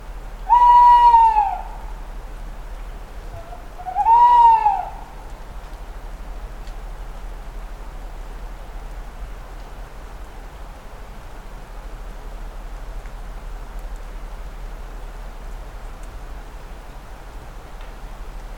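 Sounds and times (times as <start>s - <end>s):
owl giving a whistled hoot: 0.4s - 1.9s, 3.4s - 5.2s.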